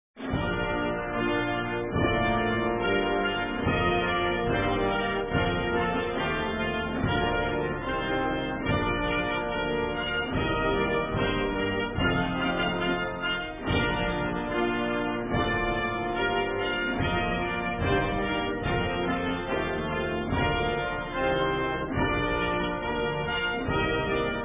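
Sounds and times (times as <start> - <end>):
national anthem: 0.2 - 24.4.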